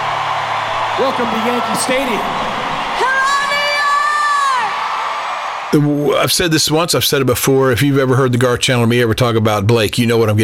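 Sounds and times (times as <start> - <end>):
crowd cheering at Yankee Stadium: 0.0 - 7.7
speech: 1.0 - 2.7, 5.7 - 10.4
person whooping at Yankee Stadium: 1.0 - 4.9.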